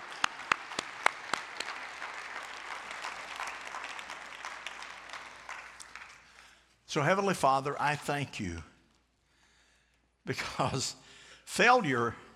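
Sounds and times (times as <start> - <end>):
audience applause: 0.0 - 6.6
speech: 6.9 - 8.7, 10.3 - 12.2.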